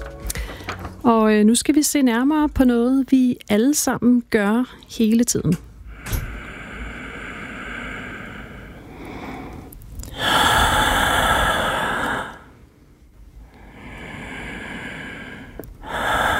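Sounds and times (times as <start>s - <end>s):
heavy human breathing: 0.2s - 1.0s, 5.9s - 12.6s, 13.4s - 16.3s
speech: 1.1s - 5.7s.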